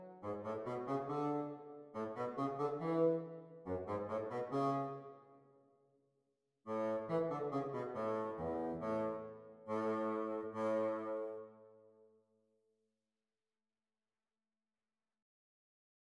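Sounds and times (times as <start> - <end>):
bassoon duet practice: 0.0 - 5.0, 6.7 - 11.5.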